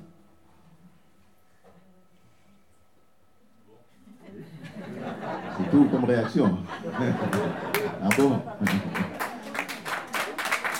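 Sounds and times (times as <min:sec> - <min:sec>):
laughter: 0:04.1 - 0:10.7
speech: 0:05.7 - 0:09.2
audience applause: 0:07.2 - 0:10.7.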